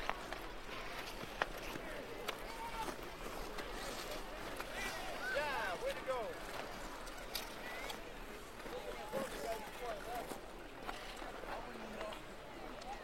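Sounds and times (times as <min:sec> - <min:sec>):
outdoor hockey ambience: 0:00.0 - 0:13.0.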